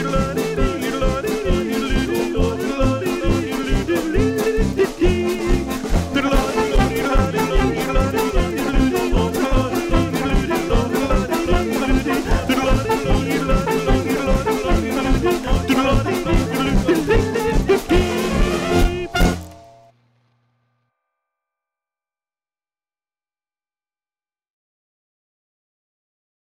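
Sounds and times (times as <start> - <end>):
German band playing: 0.0 - 19.9.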